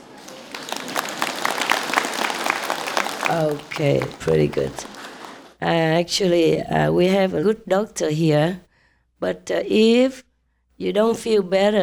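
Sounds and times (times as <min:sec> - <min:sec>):
audience applause: 0:00.0 - 0:05.6
speech: 0:03.3 - 0:05.0, 0:05.6 - 0:08.6, 0:09.2 - 0:10.2, 0:10.8 - 0:11.8.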